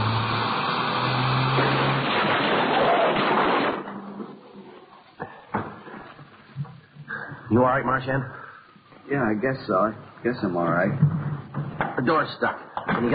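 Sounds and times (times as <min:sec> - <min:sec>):
engine and tire roar: 0:00.0 - 0:02.8
car crash: 0:00.0 - 0:04.6
speech: 0:07.5 - 0:08.4, 0:09.1 - 0:11.2, 0:12.0 - 0:13.1.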